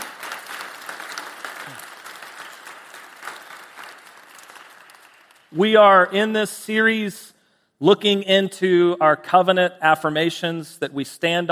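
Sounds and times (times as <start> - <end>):
church congregation applause welcoming a guest speaker: 0.0 - 6.9
speech: 5.5 - 11.5.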